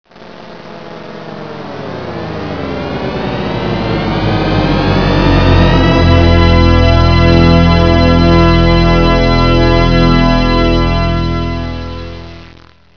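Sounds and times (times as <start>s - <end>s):
synth: 0.2s - 12.6s.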